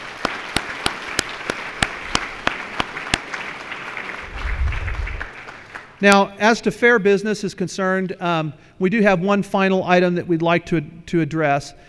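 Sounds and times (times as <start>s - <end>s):
audience round of applause: 0.0s - 6.0s
speech: 6.0s - 11.8s.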